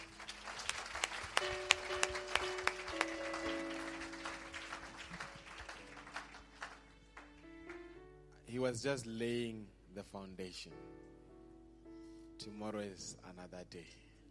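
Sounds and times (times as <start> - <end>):
audience applauding: 0.0 - 7.9
speech: 8.6 - 11.1, 12.4 - 14.0.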